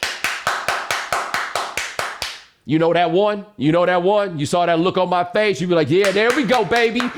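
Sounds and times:
enthusiastic hand claps: 0.0 - 2.5, 6.0 - 7.1
speech: 2.6 - 7.1.

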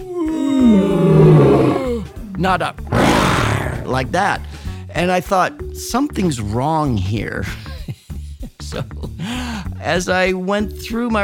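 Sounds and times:
lion roar: 0.1 - 2.2, 2.9 - 4.2
speech: 2.4 - 2.8, 3.9 - 7.7, 9.8 - 11.2.

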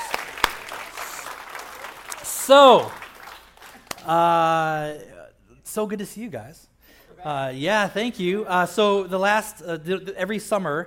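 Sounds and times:
audience applause: 0.0 - 4.0
speech: 2.5 - 3.0, 4.0 - 5.1, 5.7 - 10.8.

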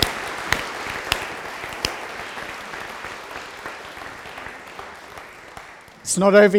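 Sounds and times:
audience clapping: 0.0 - 6.5
speech: 6.1 - 6.5.

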